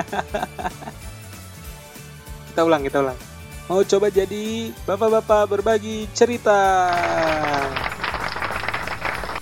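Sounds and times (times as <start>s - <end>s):
speech: 0.0s - 0.9s, 2.6s - 7.9s
laughter: 0.0s - 1.0s, 6.9s - 9.1s
applause sound effect: 6.8s - 9.4s.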